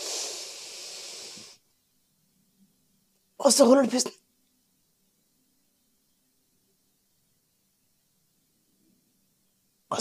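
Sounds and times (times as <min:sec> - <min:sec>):
deep inhale through the nose: 0:00.0 - 0:01.6
speech: 0:03.4 - 0:04.2.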